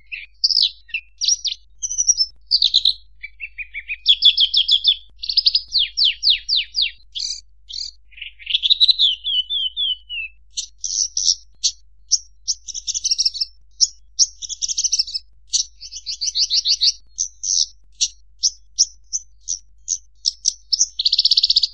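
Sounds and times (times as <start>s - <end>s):
Horsfield's bush lark singing: 0.0s - 21.7s.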